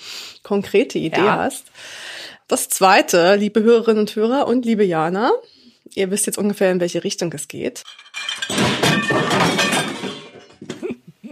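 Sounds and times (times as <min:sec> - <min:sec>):
speech: 0:00.4 - 0:08.0
dishes falling and breaking: 0:07.8 - 0:10.9.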